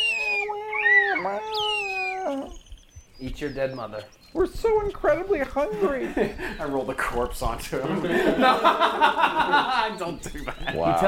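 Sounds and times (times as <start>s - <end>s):
voice imitating hungry baby birds crying for food: 0.0s - 7.9s
speech: 3.2s - 11.0s
laughter: 5.6s - 7.2s, 7.8s - 11.0s.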